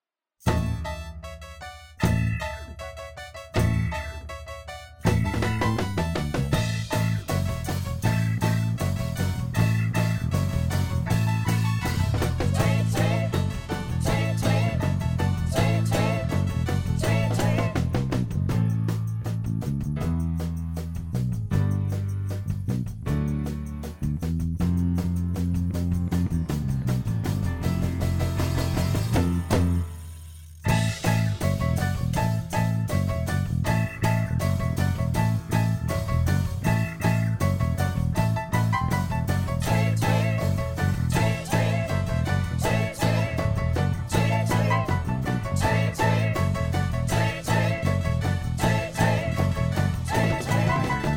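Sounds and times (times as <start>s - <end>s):
instrumental music: 0.4s - 51.1s.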